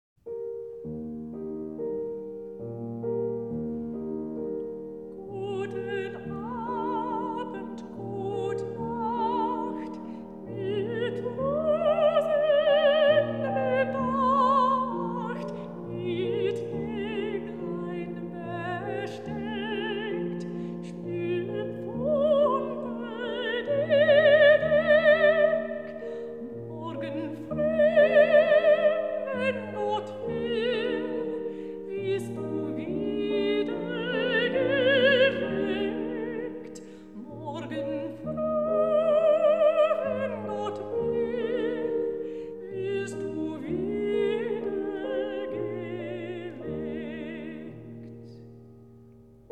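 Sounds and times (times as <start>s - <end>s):
lullaby cradle song: 0.4s - 48.5s.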